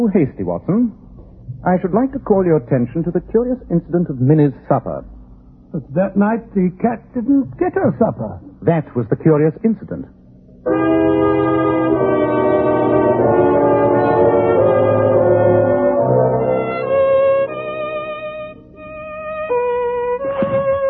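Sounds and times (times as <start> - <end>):
speech: 0.0 - 1.0, 1.6 - 11.3
violin playing alone: 10.7 - 20.8.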